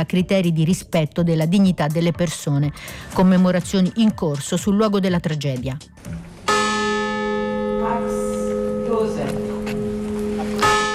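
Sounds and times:
speech: 0:00.0 - 0:06.2
church bell tolling: 0:06.5 - 0:10.9.

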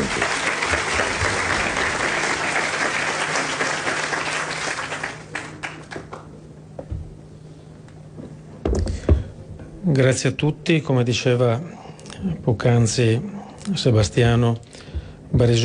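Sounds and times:
audience applause: 0:00.0 - 0:06.3
speech: 0:09.9 - 0:14.7, 0:15.3 - 0:15.6.

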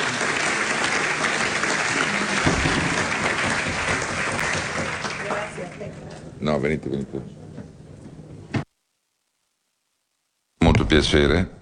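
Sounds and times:
audience applause: 0:00.0 - 0:06.6
speech: 0:06.4 - 0:07.4, 0:10.9 - 0:11.6.

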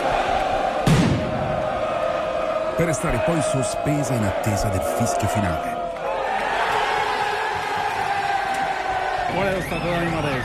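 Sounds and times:
Inter fans celebrating in Piazza Duomo, Milan: 0:00.0 - 0:10.4
speech: 0:02.8 - 0:05.8, 0:09.4 - 0:10.4.

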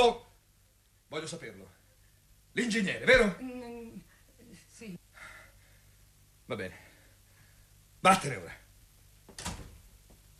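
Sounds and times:
speech: 0:00.0 - 0:00.2, 0:01.1 - 0:01.8, 0:02.6 - 0:04.1, 0:04.8 - 0:05.0, 0:06.5 - 0:06.8, 0:08.0 - 0:08.6
faint hum: 0:00.0 - 0:10.3
door shutting: 0:09.3 - 0:09.9.

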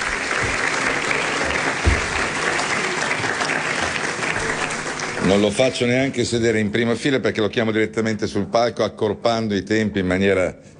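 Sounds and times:
audience applause: 0:00.0 - 0:06.4
speech: 0:05.3 - 0:10.7.

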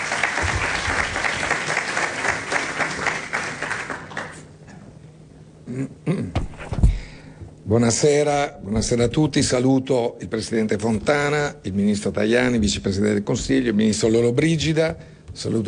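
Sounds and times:
audience applause: 0:00.0 - 0:04.5
speech: 0:05.8 - 0:06.4, 0:07.7 - 0:15.6.

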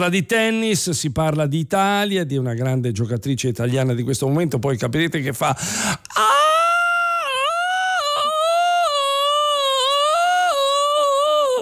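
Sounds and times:
speech: 0:00.0 - 0:06.4
woman screaming as an imitation: 0:06.1 - 0:11.5.

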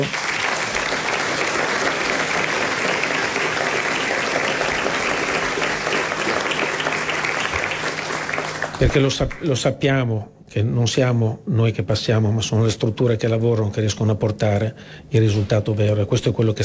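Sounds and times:
audience applause: 0:00.0 - 0:09.5
speech: 0:08.8 - 0:16.6.

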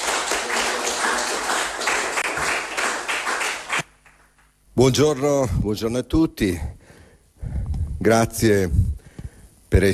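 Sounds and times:
audience applause: 0:00.0 - 0:04.2
speech: 0:04.8 - 0:06.8, 0:08.0 - 0:08.8, 0:09.7 - 0:09.9.

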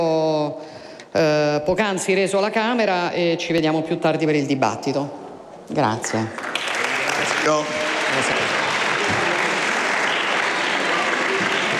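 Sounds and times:
speech: 0:01.2 - 0:06.4, 0:07.2 - 0:09.2
applause from a large assembly in the senate chamber: 0:06.0 - 0:11.7.

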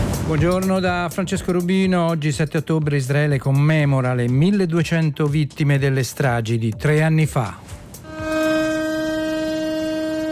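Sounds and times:
speech: 0:00.3 - 0:07.8
memorial siren sustained tone: 0:08.1 - 0:10.3.

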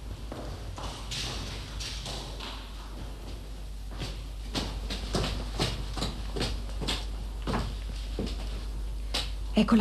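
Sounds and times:
footsteps climbing a dark stairway: 0:00.0 - 0:09.5.

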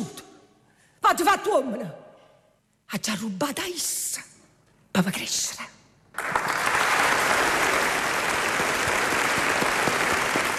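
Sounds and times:
speech: 0:01.1 - 0:02.0, 0:02.9 - 0:04.3, 0:05.0 - 0:06.5
applause in the studio: 0:06.1 - 0:10.5.

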